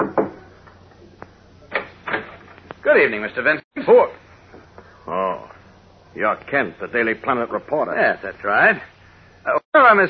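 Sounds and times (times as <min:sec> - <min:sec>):
knocking on the door of a ground-floor tenement apartment, radio drama effect: 0:00.0 - 0:00.4
speech: 0:02.9 - 0:04.2, 0:06.2 - 0:10.0.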